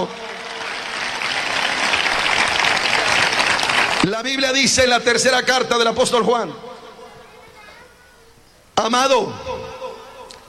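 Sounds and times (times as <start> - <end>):
speech: 0.0 - 0.3, 4.0 - 6.7, 8.8 - 9.8
loud applause: 0.0 - 4.2.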